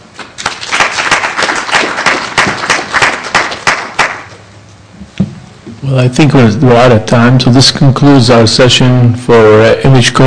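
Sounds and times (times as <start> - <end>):
audience applause after a talk: 0.4 - 4.3
speech: 5.8 - 10.2.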